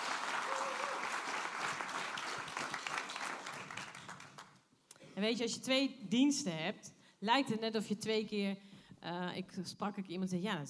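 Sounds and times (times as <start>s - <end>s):
audience applause: 0.0s - 4.5s
speech: 5.2s - 10.6s.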